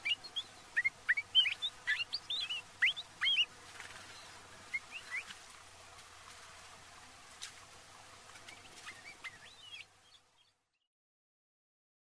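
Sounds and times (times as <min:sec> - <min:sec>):
Palila warbling: 0:00.0 - 0:05.4, 0:08.4 - 0:10.6.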